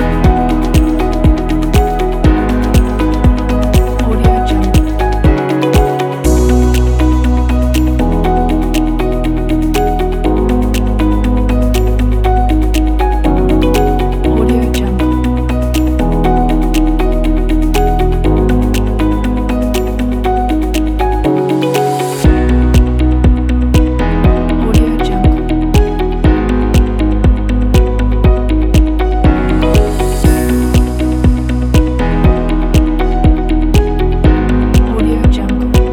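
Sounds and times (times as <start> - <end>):
corporate motivational dynamic music: 0.0 - 35.9.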